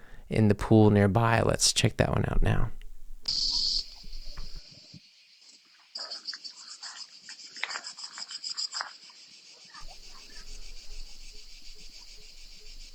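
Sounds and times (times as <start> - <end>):
speech: 0.3 - 3.4
chorus of cicadas in trees: 3.3 - 12.9.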